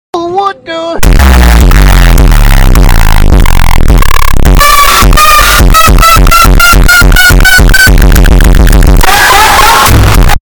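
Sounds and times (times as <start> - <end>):
bass sound: 1.0 - 10.4.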